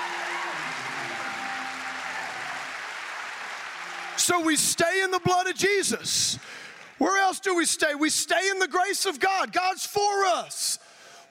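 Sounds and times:
audience clapping: 0.0 - 7.4
speech: 4.2 - 10.9.

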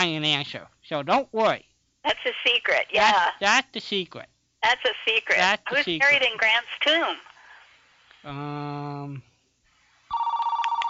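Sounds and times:
speech: 0.0 - 7.3, 8.2 - 9.3
electronic telephone ring for an incoming call to a radio show: 10.1 - 10.8.

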